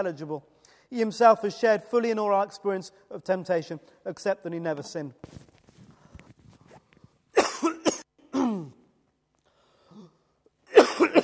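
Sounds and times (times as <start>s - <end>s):
speech: 0.0s - 5.5s
person coughing: 7.4s - 8.8s, 10.7s - 11.2s
throat clearing: 7.4s - 8.8s.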